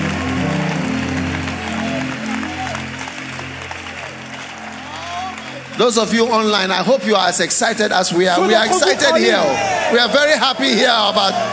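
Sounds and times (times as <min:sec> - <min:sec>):
crowd applause: 0:00.0 - 0:11.5
speech: 0:05.8 - 0:11.5.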